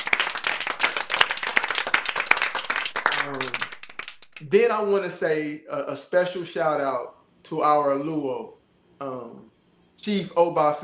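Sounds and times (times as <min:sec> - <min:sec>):
audience applause: 0:00.0 - 0:04.4
speech: 0:03.2 - 0:03.6, 0:04.4 - 0:10.8.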